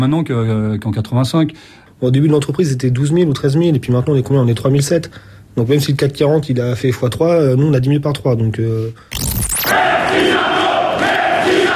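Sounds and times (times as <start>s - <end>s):
speech: 0.0s - 10.5s
striking factory workers and CGT union members shouting at a picket: 9.7s - 11.7s.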